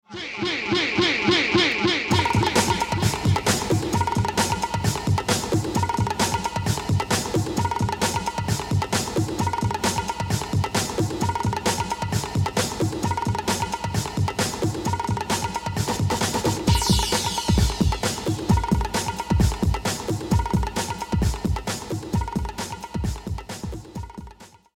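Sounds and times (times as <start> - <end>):
music beat: 0.1 - 24.7.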